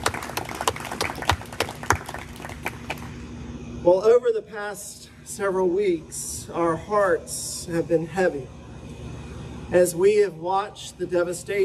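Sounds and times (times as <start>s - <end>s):
audience applause: 0.0s - 3.1s
speech: 3.8s - 8.6s, 9.7s - 11.6s.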